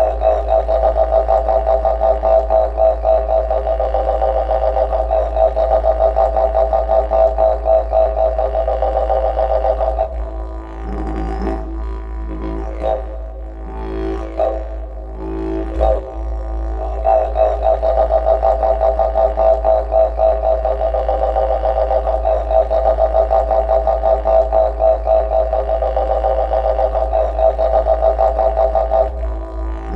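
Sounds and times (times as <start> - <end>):
didgeridoo playing: 0.0 - 29.9.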